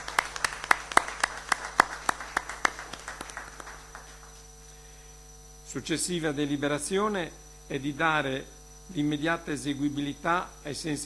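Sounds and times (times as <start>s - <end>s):
small group applause: 0.0s - 4.4s
quiet hum: 0.0s - 11.0s
speech: 5.7s - 11.0s.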